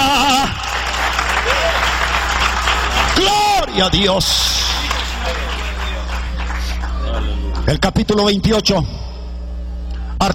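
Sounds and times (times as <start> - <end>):
audience applause: 0.0 - 7.6
speech: 3.2 - 4.6, 7.7 - 9.1.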